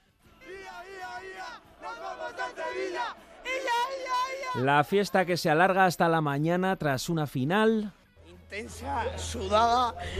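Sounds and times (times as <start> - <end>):
large crowd chanting a football chant: 0.0 - 5.1
speech: 1.6 - 10.1.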